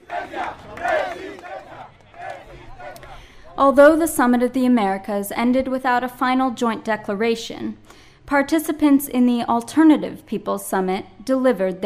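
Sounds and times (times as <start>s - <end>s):
crowd of protesters marching and chanting: 0.0s - 3.6s
speech: 3.6s - 11.8s.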